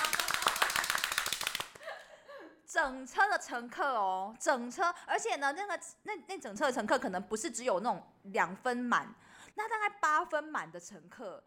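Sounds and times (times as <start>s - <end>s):
applause: 0.0s - 1.8s
speech: 2.8s - 11.4s.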